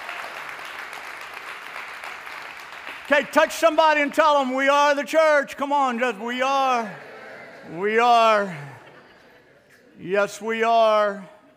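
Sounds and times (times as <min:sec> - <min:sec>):
audience clapping: 0:00.0 - 0:04.0
speech: 0:03.1 - 0:08.8, 0:10.0 - 0:11.3
laughter: 0:06.8 - 0:10.0.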